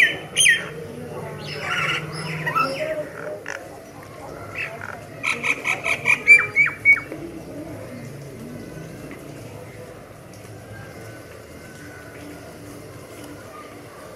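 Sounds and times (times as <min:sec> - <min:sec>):
myna calls: 0:00.0 - 0:07.1.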